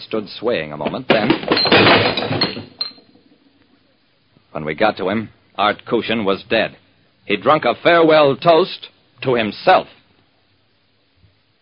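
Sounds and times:
speech: 0:00.1 - 0:02.8, 0:04.5 - 0:10.0
wine glass shattering on floor: 0:01.1 - 0:03.1
falling glass shard tinkling: 0:01.5 - 0:03.1.

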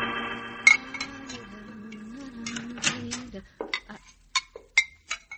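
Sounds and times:
dishes and cutlery clattering while being washed: 0:00.7 - 0:01.5, 0:02.4 - 0:05.3.

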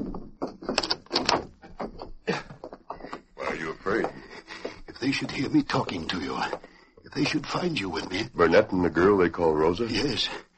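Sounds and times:
metallic scrape of the bolt sliding home: 0:00.0 - 0:02.0
door being bolted shut with heavy wooden clunks: 0:00.0 - 0:02.2
speech: 0:05.1 - 0:10.5.

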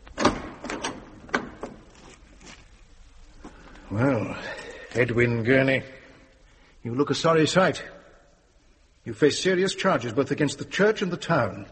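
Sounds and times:
door opening: 0:00.0 - 0:01.9
speech: 0:03.9 - 0:06.0, 0:06.8 - 0:08.0, 0:09.0 - 0:11.7.

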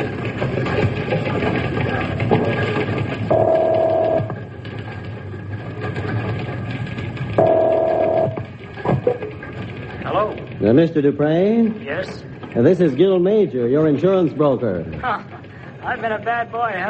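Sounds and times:
low hum: 0:00.0 - 0:16.8
telephone being dialed with soft clicks: 0:03.3 - 0:04.4, 0:07.4 - 0:08.4
speech: 0:10.7 - 0:16.8.

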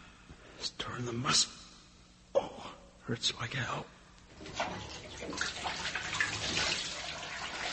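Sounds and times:
speech: 0:01.0 - 0:01.5, 0:03.1 - 0:06.0
water running from a tap while washing off blood: 0:04.4 - 0:07.7.

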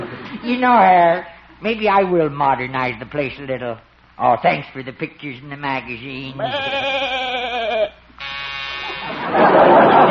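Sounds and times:
speech: 0:00.4 - 0:07.2
new electric door buzzer: 0:08.2 - 0:09.5
laughter: 0:08.8 - 0:10.1.

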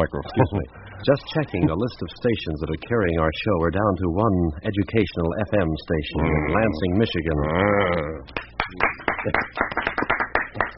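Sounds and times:
speech: 0:00.0 - 0:09.9
applause: 0:08.6 - 0:10.7.

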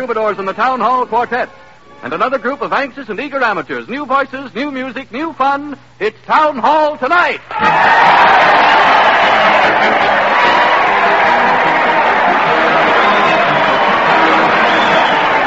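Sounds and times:
speech: 0:00.0 - 0:09.0, 0:09.6 - 0:10.2
crowd cheering: 0:07.5 - 0:15.4.

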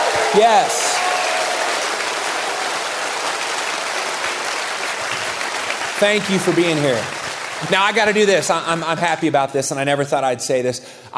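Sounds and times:
audience applause: 0:00.0 - 0:08.5
speech: 0:00.3 - 0:00.8, 0:06.0 - 0:11.1.

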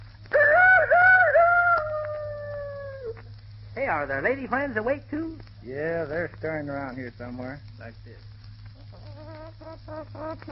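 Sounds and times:
low steady hum: 0:00.0 - 0:10.5
rooster crowing: 0:00.3 - 0:03.2
speech: 0:03.9 - 0:08.4, 0:09.7 - 0:10.5.

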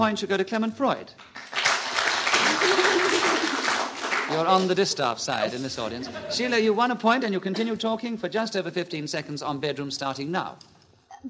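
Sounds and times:
speech: 0:00.0 - 0:01.6, 0:04.3 - 0:11.2
studio audience clapping: 0:01.2 - 0:05.0
laughter: 0:02.2 - 0:08.1.

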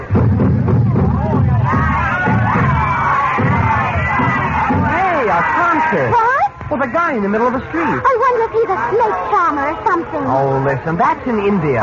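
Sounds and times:
crowd hubbub in a bazaar: 0:00.0 - 0:11.8
raised shouts and calls: 0:00.9 - 0:10.8
speech: 0:06.8 - 0:11.8.

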